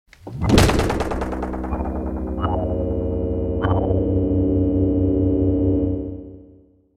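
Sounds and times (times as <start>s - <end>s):
game over jingle: 1.4s - 6.6s.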